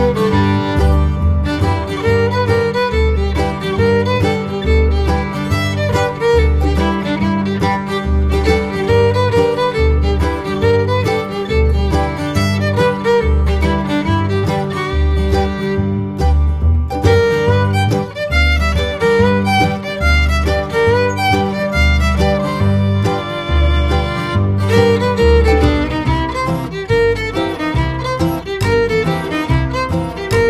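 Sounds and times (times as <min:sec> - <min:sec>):
blues fiddle tune: 0:00.0 - 0:30.4.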